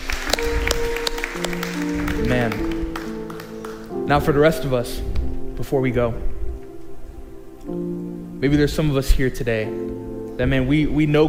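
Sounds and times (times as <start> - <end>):
church audience applause: 0.0 - 4.0
speech: 4.1 - 6.3, 8.4 - 11.2.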